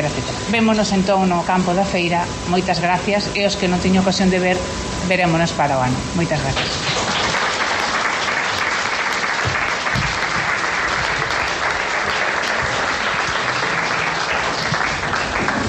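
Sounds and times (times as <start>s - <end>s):
speech: 0.0s - 6.9s
audience applause: 6.6s - 15.6s.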